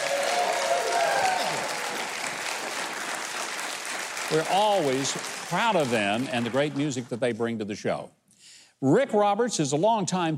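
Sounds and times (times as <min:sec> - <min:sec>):
faint cheering: 0:00.0 - 0:02.4
audience applause for the band: 0:00.0 - 0:07.2
speech: 0:04.3 - 0:08.2, 0:08.8 - 0:10.3.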